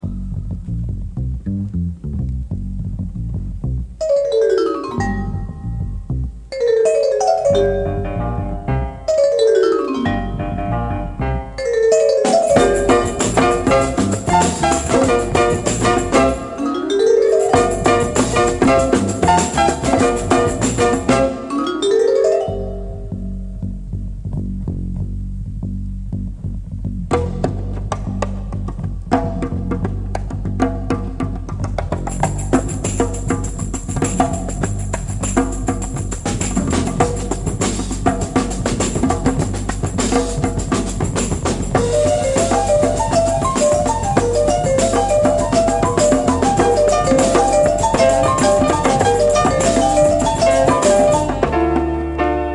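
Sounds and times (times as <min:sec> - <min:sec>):
bongos: 0:00.0 - 0:52.4.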